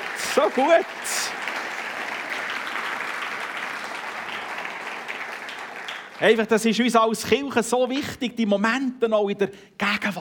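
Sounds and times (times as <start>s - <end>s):
audience applause: 0.0s - 6.4s
speech: 0.4s - 1.3s, 6.2s - 10.2s.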